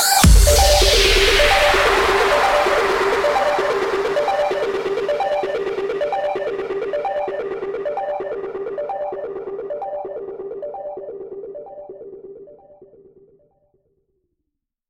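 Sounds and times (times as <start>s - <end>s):
musical stinger: 0.2s - 11.0s.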